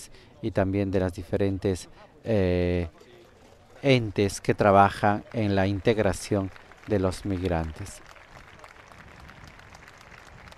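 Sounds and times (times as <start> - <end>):
speech: 0.0 - 3.1, 3.8 - 8.1
crowd applause greeting the Pope in the Plaza del Cristo, La Laguna, Tenerife: 5.2 - 10.5.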